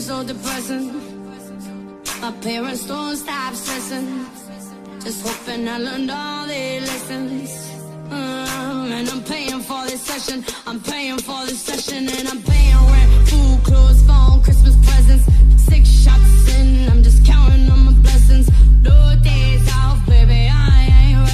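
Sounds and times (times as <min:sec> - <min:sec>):
deep bass: 0:12.5 - 0:21.3.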